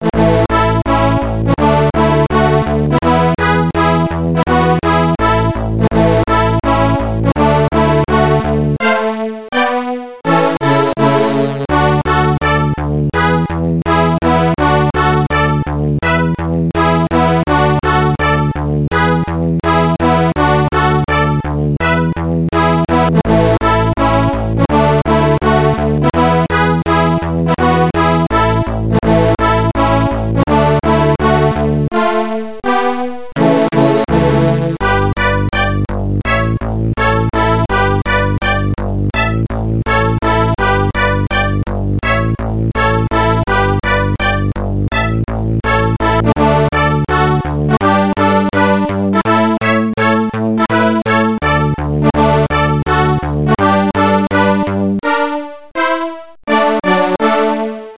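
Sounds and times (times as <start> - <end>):
theme music: 0.0 - 57.9.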